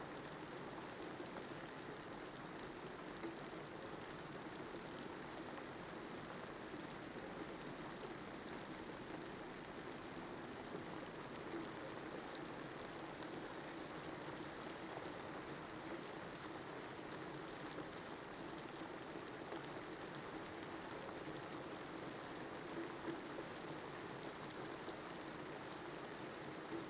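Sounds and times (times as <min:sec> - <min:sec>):
rain heard from shelter: 0:00.0 - 0:26.8.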